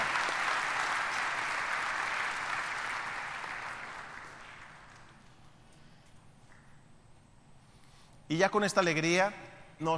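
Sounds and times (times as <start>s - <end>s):
applause: 0.0s - 5.4s
speech: 8.3s - 9.9s.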